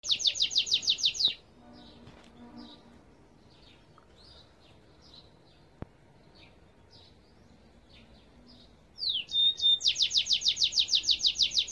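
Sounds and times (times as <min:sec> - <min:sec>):
goldfinch twittering song: 0:00.0 - 0:02.0, 0:02.6 - 0:11.7.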